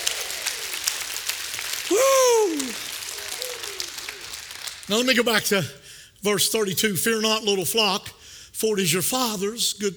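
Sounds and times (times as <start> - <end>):
audience hand clapping: 0.0 - 5.7
speech: 1.9 - 2.9, 4.9 - 9.9.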